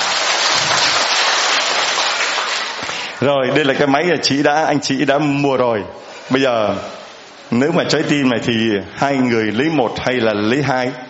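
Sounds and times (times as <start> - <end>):
audience applause: 0.0 - 3.2
speech: 3.2 - 11.0.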